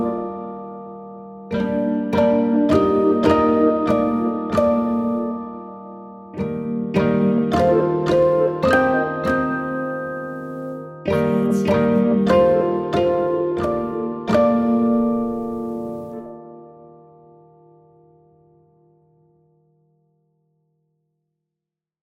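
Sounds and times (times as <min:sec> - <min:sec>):
piano pizzicato: 0:00.0 - 0:16.9.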